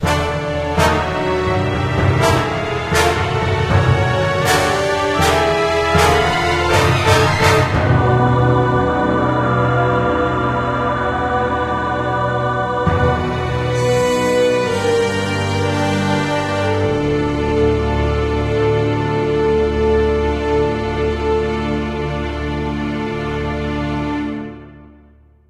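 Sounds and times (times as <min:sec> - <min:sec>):
final battle end music: 0:00.0 - 0:24.6.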